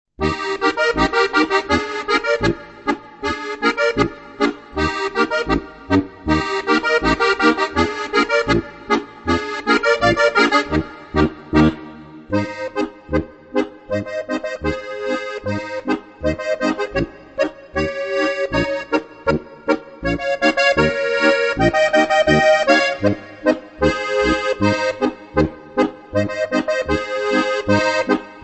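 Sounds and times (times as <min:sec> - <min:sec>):
Bavarian folk music: 0:00.2 - 0:28.4.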